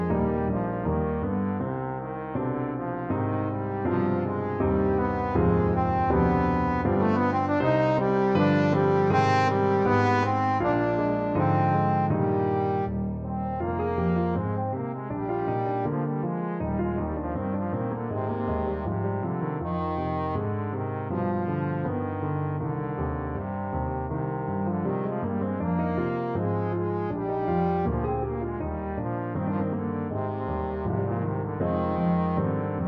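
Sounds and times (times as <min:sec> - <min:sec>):
trombone playing a folk tune: 0:00.0 - 0:32.8.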